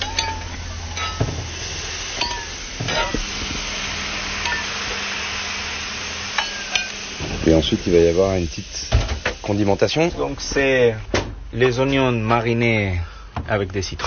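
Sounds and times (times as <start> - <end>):
shredded bull meat sizzling on a griddle with its juice: 0.0 - 10.9
speech: 7.6 - 14.0.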